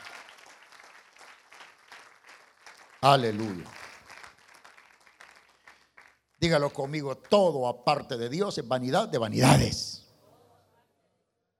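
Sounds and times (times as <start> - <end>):
audience applauding: 0.0 - 6.3
speech: 3.0 - 3.8, 6.4 - 10.0.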